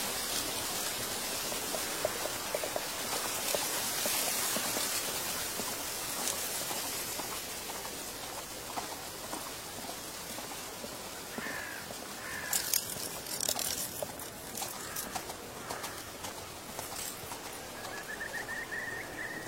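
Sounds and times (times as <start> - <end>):
dry fallen leaves rustling and crackling: 0.0 - 19.4
bird calling: 11.3 - 13.7, 14.6 - 19.4.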